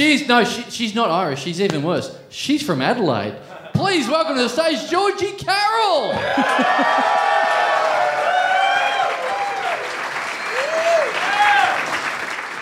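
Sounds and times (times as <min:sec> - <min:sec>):
speech: 0:00.0 - 0:07.4
laughter: 0:03.4 - 0:04.1, 0:06.1 - 0:08.0
whoops and shouted cheers: 0:06.1 - 0:12.0
crowd applause: 0:06.2 - 0:12.6.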